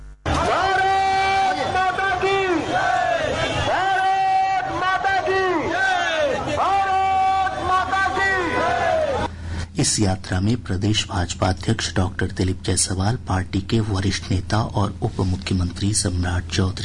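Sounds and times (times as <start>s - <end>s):
crowd chanting slogans at a BJP yatra in Patna: 0.3s - 4.0s, 4.6s - 9.3s
speech: 9.9s - 16.8s.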